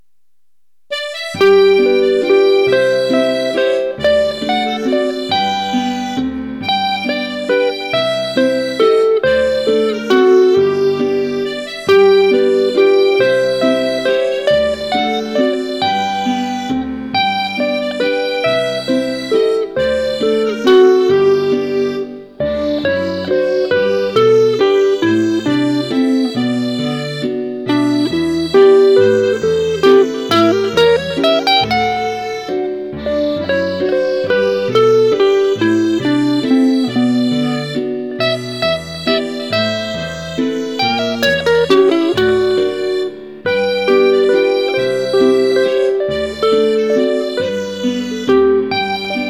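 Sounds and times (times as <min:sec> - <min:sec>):
waltz music: 0:00.9 - 0:49.2.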